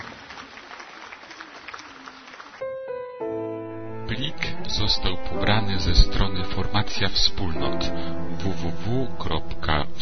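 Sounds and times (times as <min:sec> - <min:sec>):
crowd applause: 0:00.0 - 0:02.6
sustained tonal notes: 0:02.7 - 0:10.0
speech: 0:04.1 - 0:10.0.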